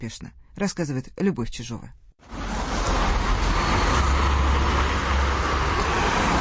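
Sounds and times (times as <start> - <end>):
speech: 0.0 - 2.4
city traffic noise: 2.2 - 6.3.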